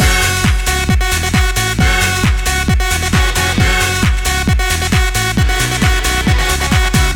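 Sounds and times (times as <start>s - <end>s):
stomping to a beat: 0.0s - 7.1s.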